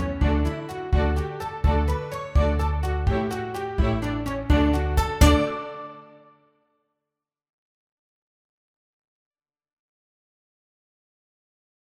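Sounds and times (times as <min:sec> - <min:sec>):
violin playing a cheerful dance: 0:00.0 - 0:06.2.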